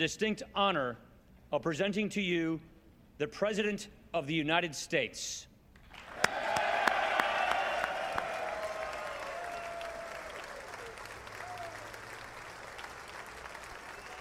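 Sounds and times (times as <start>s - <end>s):
speech: 0.0s - 5.5s
standing audience clapping: 5.8s - 14.1s.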